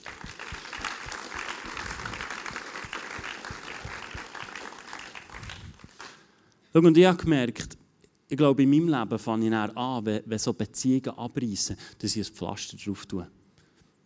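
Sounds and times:
crowd applauding: 0:00.0 - 0:06.2
speech: 0:06.8 - 0:13.4.

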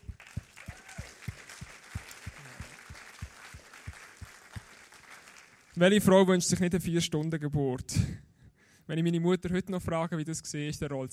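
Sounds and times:
audience applause: 0:00.0 - 0:05.8
laughter: 0:02.2 - 0:03.0
speech: 0:05.8 - 0:08.3, 0:08.9 - 0:11.1.

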